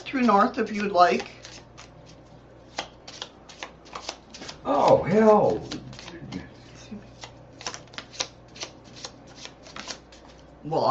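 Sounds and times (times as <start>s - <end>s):
tarot cards being shuffled by hand, cards popping out of the deck: 0.0s - 10.5s
speech: 0.1s - 1.4s, 4.6s - 6.4s, 10.6s - 10.8s.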